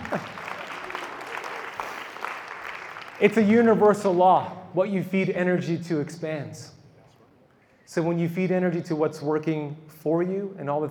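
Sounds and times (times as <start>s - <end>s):
audience clapping: 0.0s - 4.2s
speech: 3.2s - 6.8s, 7.9s - 10.8s.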